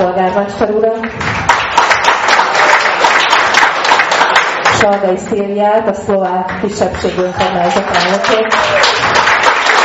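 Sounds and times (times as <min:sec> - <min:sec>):
speech: 0:00.2 - 0:01.5, 0:04.8 - 0:08.9
audience applause: 0:01.2 - 0:04.8, 0:07.3 - 0:09.8.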